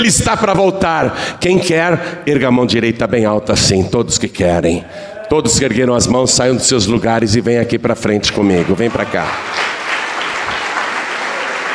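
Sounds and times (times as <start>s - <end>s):
speech: 0.0s - 9.8s
church congregation applause during an altar call: 8.3s - 11.7s.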